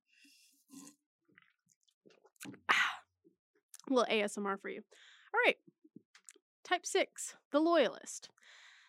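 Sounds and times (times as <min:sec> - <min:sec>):
person sipping a drink: 0:00.7 - 0:01.0
speech: 0:03.9 - 0:05.8, 0:06.7 - 0:08.4.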